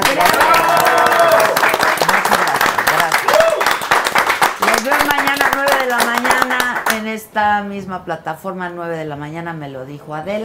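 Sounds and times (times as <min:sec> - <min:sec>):
audience applause: 0:00.0 - 0:07.0
speech: 0:07.4 - 0:10.4.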